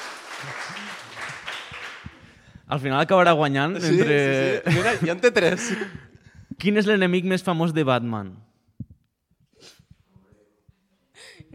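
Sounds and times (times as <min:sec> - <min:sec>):
crowd applause: 0:00.0 - 0:02.5
speech: 0:00.4 - 0:01.5, 0:02.7 - 0:08.5
laughter: 0:00.4 - 0:01.9, 0:03.7 - 0:06.2.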